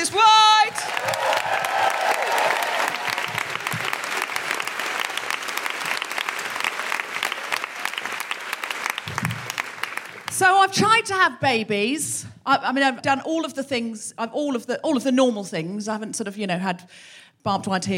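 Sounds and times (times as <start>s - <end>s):
audience applause: 0.6s - 10.4s
speech: 10.7s - 17.9s.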